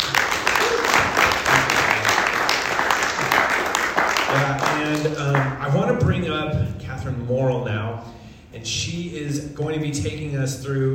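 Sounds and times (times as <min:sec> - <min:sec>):
audience applause: 0:00.0 - 0:05.5
speech: 0:04.8 - 0:10.9.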